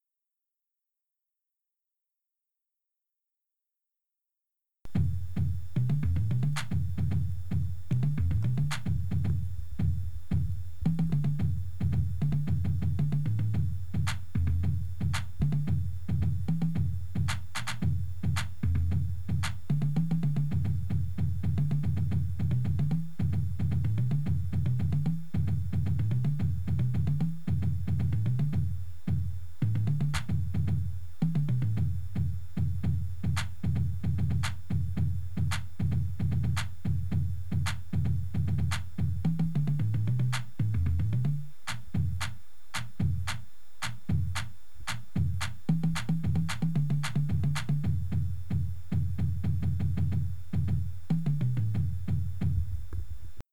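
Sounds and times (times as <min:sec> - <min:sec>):
bass: 0:04.9 - 0:42.3, 0:43.0 - 0:53.4.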